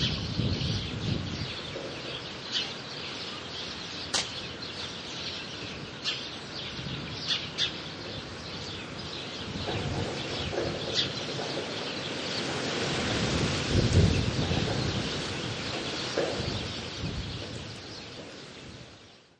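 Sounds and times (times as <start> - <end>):
birds near a farmyard in a rural countryside residential area: 0.0 - 19.3.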